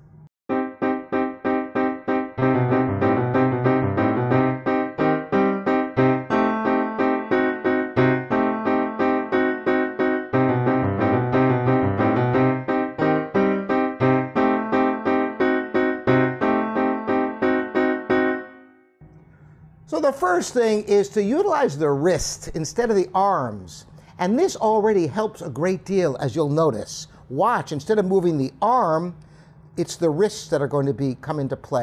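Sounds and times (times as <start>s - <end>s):
heavy arm-driven piano staccato chords: 0.5s - 18.7s
speech: 20.0s - 29.2s, 29.8s - 31.8s.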